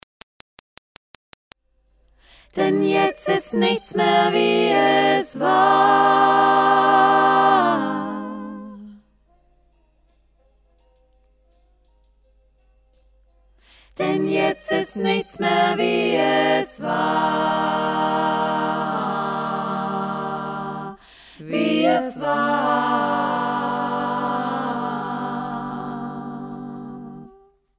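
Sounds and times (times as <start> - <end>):
a cappella choir voices: 2.4 - 9.1, 13.8 - 27.6.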